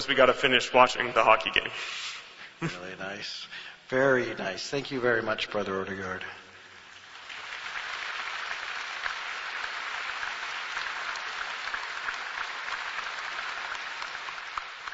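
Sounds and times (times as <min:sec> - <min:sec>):
speech: 0:00.0 - 0:06.4
audience applause: 0:06.9 - 0:14.9.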